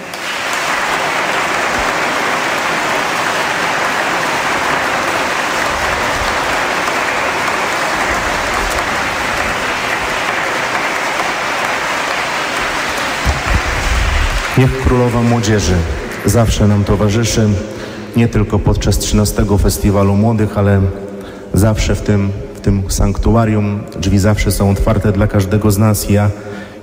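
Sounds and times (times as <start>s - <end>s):
audience applause: 0.0s - 18.1s
speech: 14.6s - 21.0s, 21.6s - 26.7s.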